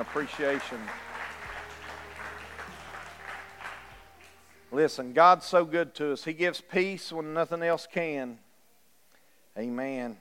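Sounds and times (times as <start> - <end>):
speech: 0.0 - 1.1, 4.7 - 8.4, 9.6 - 10.1
audience clapping hands: 0.0 - 4.8.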